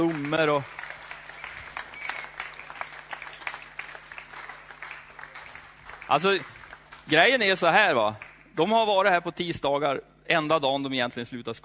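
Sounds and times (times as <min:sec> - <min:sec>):
speech: 0:00.0 - 0:00.8, 0:06.1 - 0:06.5, 0:07.1 - 0:11.6
audience applause: 0:00.0 - 0:07.3.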